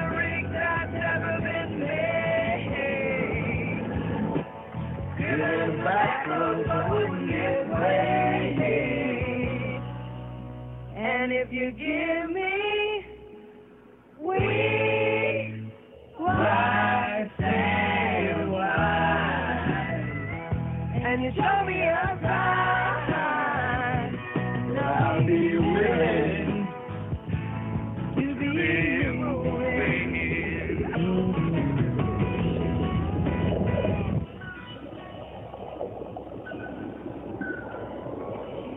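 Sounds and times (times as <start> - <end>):
country music: 0.0 - 35.0.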